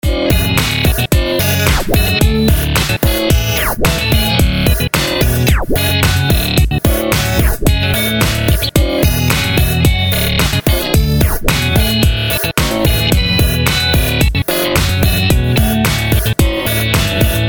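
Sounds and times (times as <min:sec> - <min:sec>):
glitchy guitar: 0:00.0 - 0:17.4.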